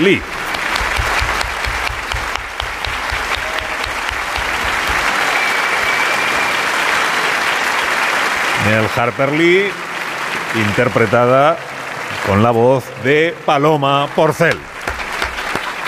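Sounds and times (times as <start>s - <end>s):
speech: 0.0s - 0.3s, 8.6s - 9.8s, 10.5s - 14.7s
rhythmic low thumps: 0.0s - 5.2s
audience applause: 0.0s - 15.8s.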